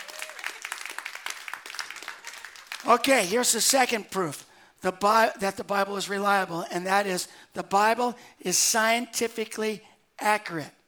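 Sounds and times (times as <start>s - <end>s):
audience applause: 0.0s - 3.1s
speech: 2.8s - 10.8s.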